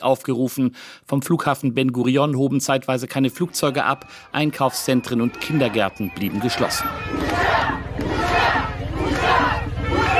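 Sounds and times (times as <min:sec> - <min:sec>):
speech: 0:00.0 - 0:08.6
large crowd chanting at street demonstration: 0:03.3 - 0:10.1.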